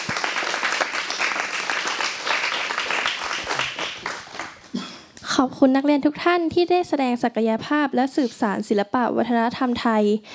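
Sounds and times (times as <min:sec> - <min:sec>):
audience applause: 0:00.0 - 0:04.7
speech: 0:05.4 - 0:10.3.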